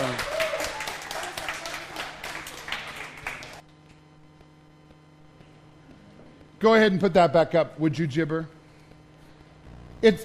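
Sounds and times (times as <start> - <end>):
audience round of applause: 0.0 - 3.6
speech: 6.6 - 8.6, 10.0 - 10.2.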